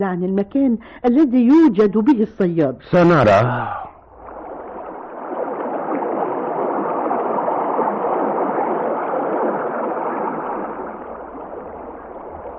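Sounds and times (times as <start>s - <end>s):
speech: 0.0s - 3.9s
calm river water flowing: 4.1s - 12.5s.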